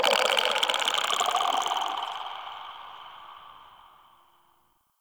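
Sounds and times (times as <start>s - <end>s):
infested devourer creature vocalization: 0.1s - 3.5s.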